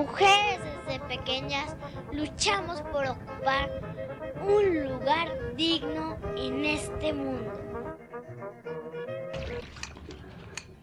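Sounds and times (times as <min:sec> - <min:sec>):
speech: 0:00.0 - 0:07.6
tap water running while dishes are washed: 0:09.4 - 0:10.8.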